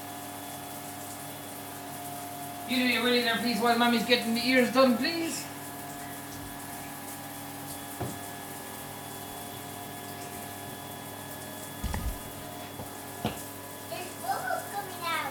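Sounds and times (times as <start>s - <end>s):
shower water running: 0.0s - 8.6s, 11.8s - 12.8s, 13.8s - 15.2s
speech: 2.7s - 5.5s
brief low thumps: 11.8s - 12.6s.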